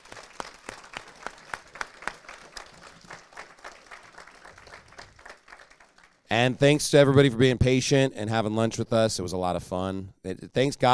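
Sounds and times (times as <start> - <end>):
small group applause: 0.0 - 6.3
speech: 6.3 - 10.9.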